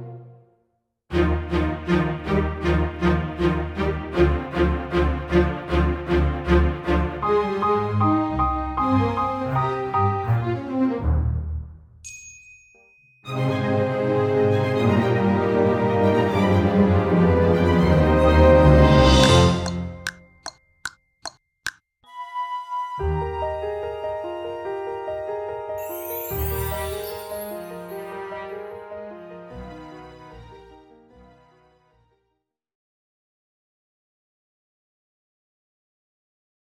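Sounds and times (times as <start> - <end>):
instrumental song: 1.1 - 11.5, 13.3 - 32.0.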